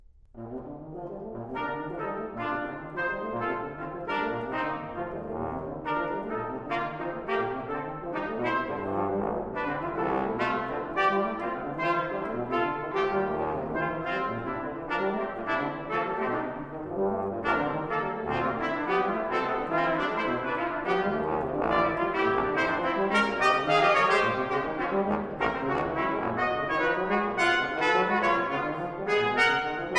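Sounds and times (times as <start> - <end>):
brass quintet playing fast and lively: 0.4 - 29.9.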